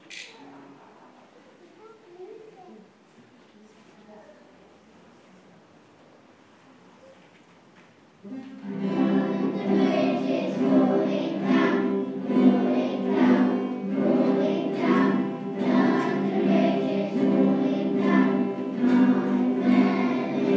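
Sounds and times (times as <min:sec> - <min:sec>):
primary guitar group: 0:08.4 - 0:20.5.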